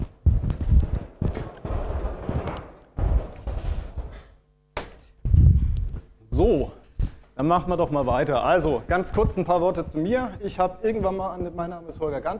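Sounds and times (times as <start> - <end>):
door closing: 0.3 - 5.7
speech: 7.4 - 12.3.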